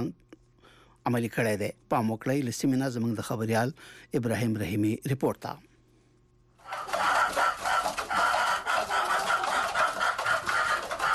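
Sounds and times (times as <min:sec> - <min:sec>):
speech: 0:00.0 - 0:00.2, 0:01.0 - 0:05.7
about a hundred chickens clucking and squawking in an old mud house in Khost: 0:06.6 - 0:11.1.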